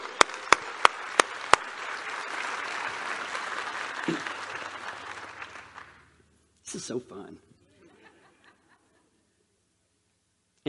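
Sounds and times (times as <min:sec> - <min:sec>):
audience applauding: 0:00.0 - 0:06.2
speech: 0:06.7 - 0:07.5
laughter: 0:07.6 - 0:09.3.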